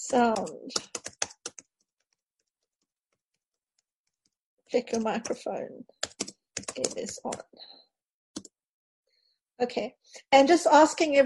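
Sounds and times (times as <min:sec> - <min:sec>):
computer keyboard typing a chat message: 0:00.0 - 0:01.7, 0:06.0 - 0:07.4
speech: 0:00.1 - 0:00.9, 0:04.7 - 0:06.0, 0:06.8 - 0:07.8, 0:09.6 - 0:11.2.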